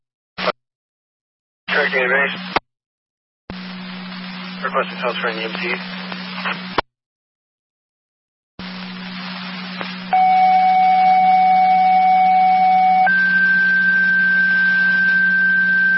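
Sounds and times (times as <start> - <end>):
constant hum and static: 1.7 - 2.6, 3.5 - 6.9, 8.6 - 15.9
speech: 1.8 - 2.6, 4.6 - 6.8
two-tone dispatch alert for EMTs over a radio channel: 10.1 - 15.9.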